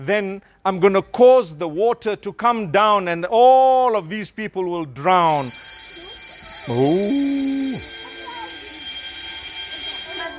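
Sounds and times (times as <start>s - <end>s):
speech: 0.0s - 5.8s, 6.6s - 8.0s
bell ringing: 5.3s - 10.3s.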